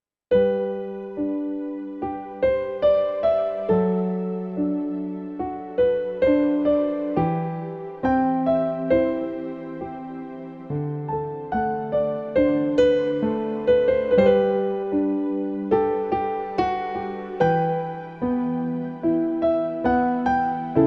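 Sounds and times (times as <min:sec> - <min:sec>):
piano love songs: 0:00.3 - 0:20.8.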